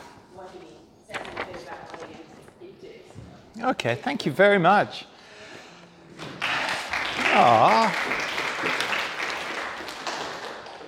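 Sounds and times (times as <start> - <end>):
speech: 3.6 - 5.1, 7.4 - 8.1
audience clapping: 6.3 - 10.8.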